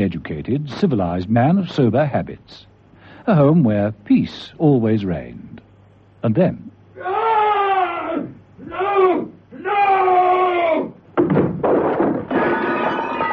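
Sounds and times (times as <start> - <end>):
speech: 0.0 - 5.6, 6.2 - 7.2
loud terrible scream: 7.0 - 11.0
heavy crash of breaking clattering debris: 11.2 - 13.3.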